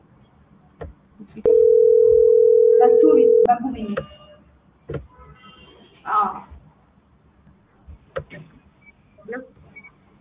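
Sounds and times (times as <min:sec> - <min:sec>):
speech: 0:01.4 - 0:01.7, 0:02.8 - 0:04.1
telephone line tone on an outgoing call: 0:01.4 - 0:03.5.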